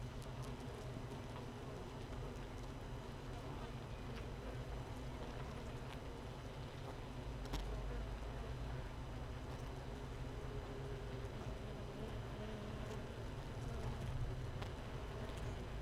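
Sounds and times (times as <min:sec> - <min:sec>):
honey bees humming inside a hive without a queen: 0:00.0 - 0:15.8.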